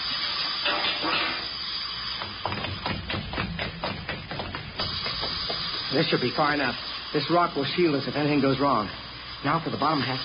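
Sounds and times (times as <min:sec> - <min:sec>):
gas hissing from chemical reaction: 0:00.0 - 0:10.2
irregular clicks and light knocks: 0:02.2 - 0:05.9
speech: 0:05.9 - 0:10.2.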